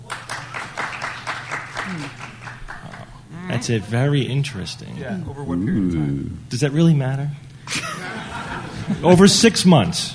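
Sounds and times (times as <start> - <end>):
audience clapping: 0.0 - 3.2
speech: 1.9 - 2.2, 3.6 - 7.8, 8.9 - 10.1
laughter: 7.7 - 9.4.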